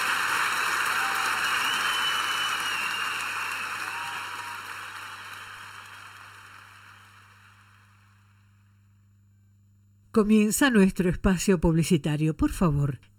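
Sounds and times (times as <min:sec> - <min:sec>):
audience clapping: 0:00.0 - 0:08.6
speech: 0:10.2 - 0:13.1.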